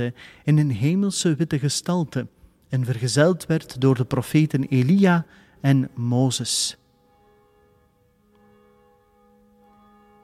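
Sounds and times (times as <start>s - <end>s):
speech: 0.0s - 6.8s
church tower bell ringing: 3.0s - 10.2s.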